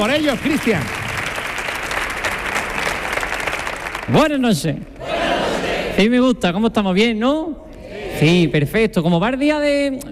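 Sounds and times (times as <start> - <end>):
speech: 0.0 - 1.0, 4.1 - 5.1, 6.0 - 7.6, 8.2 - 10.0
audience applause: 0.0 - 4.4.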